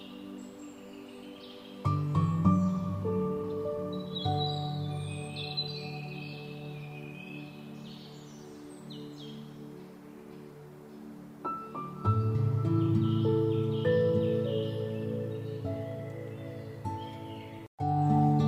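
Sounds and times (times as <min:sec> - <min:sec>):
birds chirping and twittering: 0:00.0 - 0:18.4
relaxing music with low sustained tones: 0:00.0 - 0:18.4.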